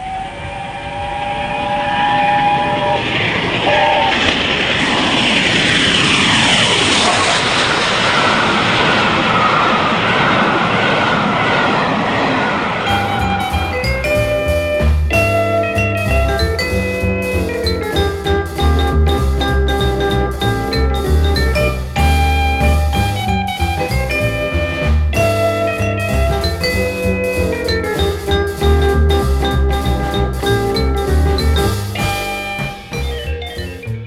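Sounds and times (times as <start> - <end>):
Flying Scotsman LNER flagship steam locomotive roaring: 0.0 - 34.0
musical passage: 12.9 - 34.0.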